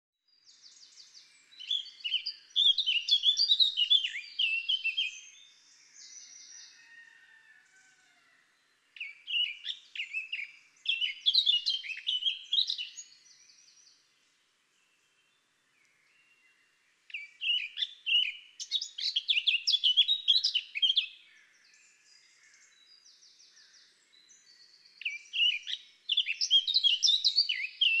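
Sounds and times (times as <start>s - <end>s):
Eurasian blackcap singing: 0.4s - 6.4s, 9.0s - 14.0s, 17.1s - 21.3s, 24.2s - 27.9s.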